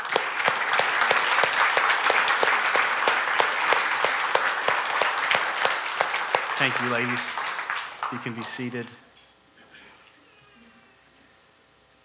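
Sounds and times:
audience applause: 0.0s - 9.0s
speech: 6.6s - 7.4s, 8.1s - 9.1s.

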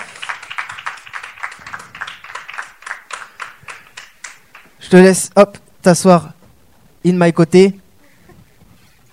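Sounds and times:
audience applause: 0.0s - 4.8s
laughter: 1.6s - 4.6s
speech: 4.9s - 6.4s, 7.0s - 7.8s.

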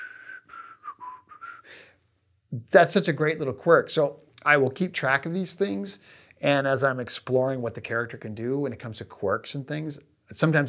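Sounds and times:
person whistling a short wavering tune: 0.0s - 1.9s
speech: 2.5s - 10.6s.

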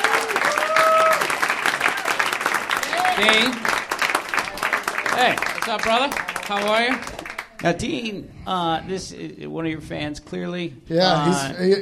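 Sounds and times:
audience applause: 0.0s - 7.7s
speech: 3.2s - 3.8s, 5.2s - 11.8s.

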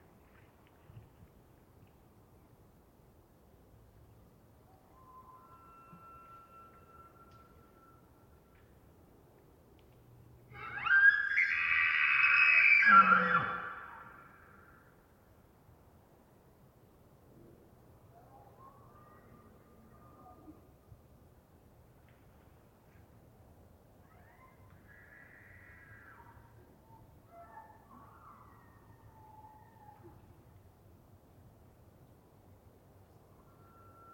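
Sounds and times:
fainter calls and chirps from other elk: 4.8s - 8.2s, 10.5s - 14.8s, 24.0s - 30.4s, 33.4s - 34.1s.

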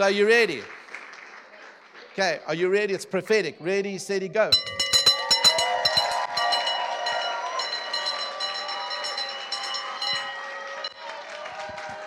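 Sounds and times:
speech: 0.0s - 0.8s, 2.2s - 4.8s
handbell ringing: 4.5s - 11.0s.

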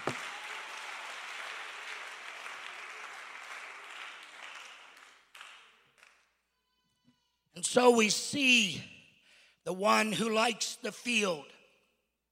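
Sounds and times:
audience clapping hands: 0.0s - 6.4s
speech: 7.6s - 8.9s, 9.6s - 11.5s.

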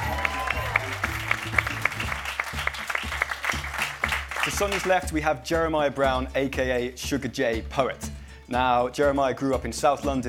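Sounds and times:
audience applause: 0.0s - 5.0s
speech: 4.4s - 10.2s.

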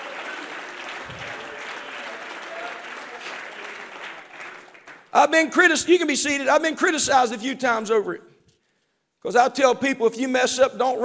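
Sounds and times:
crowd clapping hands in praise: 0.0s - 5.3s
speech: 5.2s - 8.3s, 9.2s - 11.0s.

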